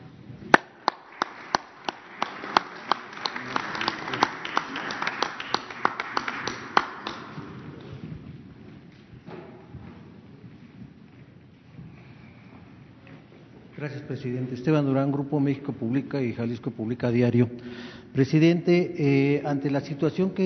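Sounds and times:
audience applause: 0.5 - 7.9
speech: 13.8 - 20.4.

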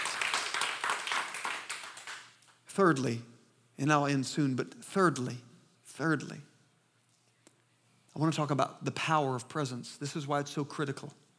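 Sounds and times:
audience clapping hands: 0.0 - 2.6
speech: 2.8 - 6.5, 8.2 - 11.2.

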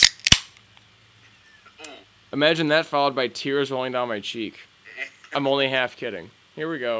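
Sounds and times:
beer can cracking open: 0.0 - 0.6
speech: 2.3 - 4.7, 5.3 - 6.9.

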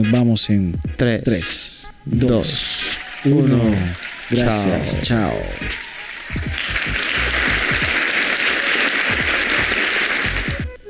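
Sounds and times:
speech: 0.0 - 6.6
crowd applause: 2.3 - 10.7.

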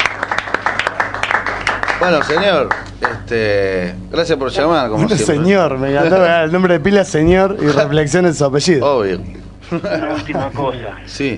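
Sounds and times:
applause: 0.0 - 3.2
speech: 2.0 - 11.3
laughter: 9.6 - 10.8.

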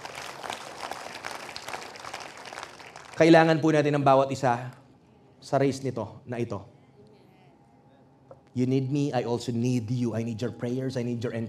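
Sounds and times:
church congregation clapping during a sermon: 0.0 - 3.9
speech: 3.2 - 4.8, 5.4 - 6.7, 8.5 - 11.4.

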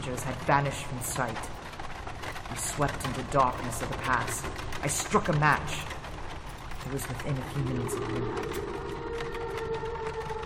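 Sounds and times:
speech: 0.1 - 1.6, 2.5 - 5.9, 6.8 - 8.9
dog howling far down the road: 7.9 - 10.4.

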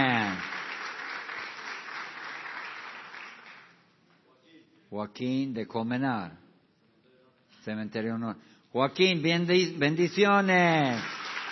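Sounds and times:
audience applause: 0.0 - 3.8, 10.8 - 11.5
speech: 4.9 - 6.4, 7.6 - 11.2.

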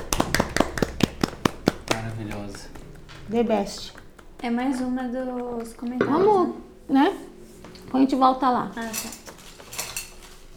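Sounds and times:
hand clapping: 0.0 - 6.0
speech: 2.3 - 7.3, 7.9 - 9.2.

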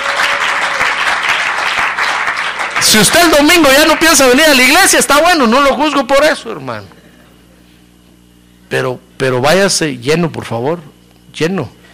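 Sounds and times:
church audience applauding: 0.0 - 4.6
speech: 2.8 - 7.0, 8.7 - 11.8.

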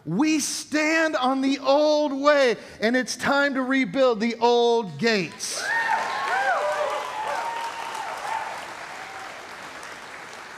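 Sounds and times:
speech: 0.0 - 5.9
faint whoops or cheers: 5.6 - 9.6
audience clapping: 5.6 - 10.5.

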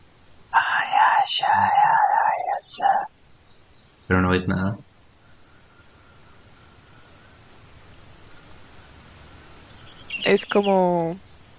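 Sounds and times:
eerie whispering sound effect: 0.6 - 3.1
speech: 2.6 - 3.1, 4.1 - 4.9, 10.3 - 11.3.

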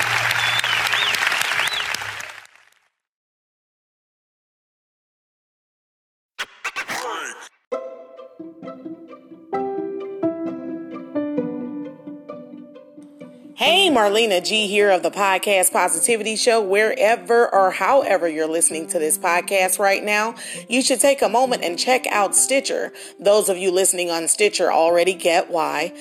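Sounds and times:
church congregation applauding in celebration: 0.0 - 2.8
music: 7.7 - 25.9
speech: 13.6 - 25.9.

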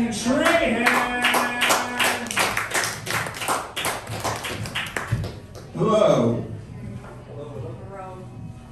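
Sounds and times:
speech: 0.0 - 1.2, 5.8 - 6.4
small audience clapping for an open mic host at the Madhouse Brick Room: 0.4 - 5.8.

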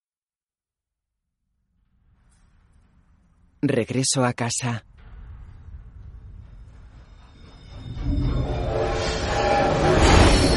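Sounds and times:
speech: 3.6 - 4.9
train passing through a tunnel: 5.4 - 10.5.

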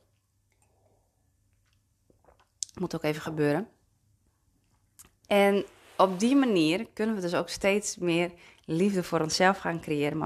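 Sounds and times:
person sipping tea: 0.6 - 2.6
speech: 2.8 - 3.8, 5.3 - 10.2.

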